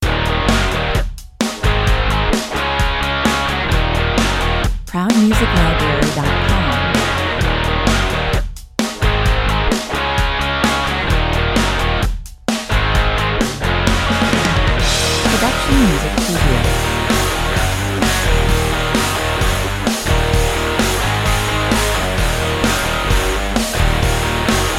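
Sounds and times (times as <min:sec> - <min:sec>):
solid rock music at 130 BPM: 0:00.0 - 0:24.7.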